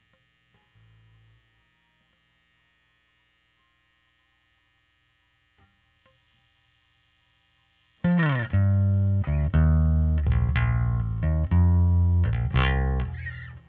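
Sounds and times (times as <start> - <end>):
overdriven bass: 8.0 - 13.6.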